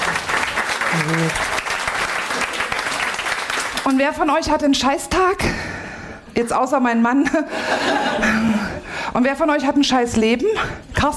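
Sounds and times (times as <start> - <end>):
audience clapping: 0.0 - 4.2
speech: 0.9 - 1.6, 3.9 - 5.6, 6.4 - 11.1.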